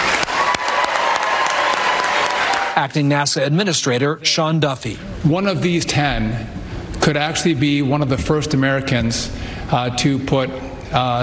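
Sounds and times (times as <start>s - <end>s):
audience applause at a NASA pep rally for astronaut candidates: 0.0s - 2.9s
speech: 2.8s - 11.2s.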